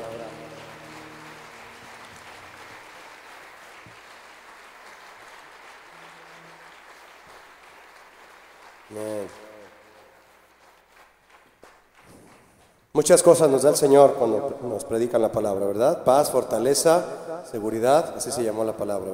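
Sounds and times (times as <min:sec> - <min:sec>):
audience applauding: 0:00.0 - 0:12.9
speech: 0:08.9 - 0:09.5, 0:13.0 - 0:19.1.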